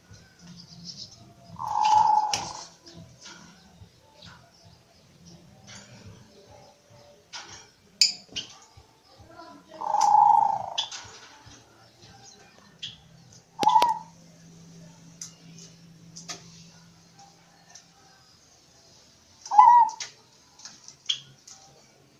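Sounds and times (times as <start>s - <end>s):
zebra dove purring trill and coos: 1.4s - 3.6s, 9.6s - 11.1s, 13.6s - 14.2s, 19.5s - 20.1s.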